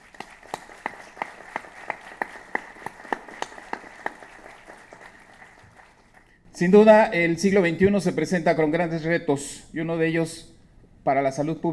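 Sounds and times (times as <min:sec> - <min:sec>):
applause: 0:00.0 - 0:06.4
speech: 0:06.6 - 0:11.7.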